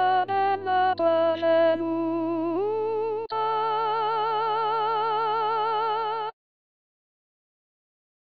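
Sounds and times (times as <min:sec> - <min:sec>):
tenors singing: 0:00.0 - 0:06.3.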